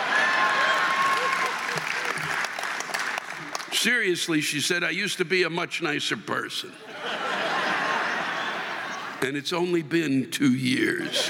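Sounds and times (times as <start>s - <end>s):
audience applause: 0.0s - 3.9s
laughter: 0.9s - 2.6s, 6.7s - 9.3s, 10.7s - 11.2s
speech: 3.8s - 7.2s, 9.2s - 11.2s.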